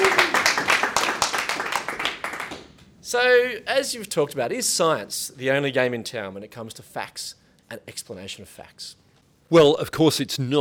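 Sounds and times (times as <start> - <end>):
audience round of applause: 0.0 - 2.8
speech: 3.1 - 10.5.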